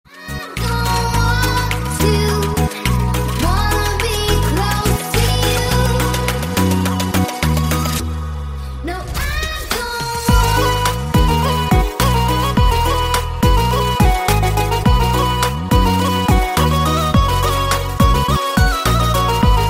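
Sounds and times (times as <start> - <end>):
slow remix music: 0.1 - 19.6.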